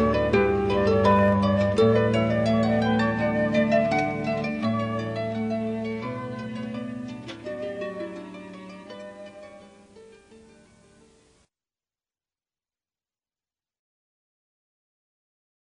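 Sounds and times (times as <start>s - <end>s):
harp: 0.0s - 11.4s.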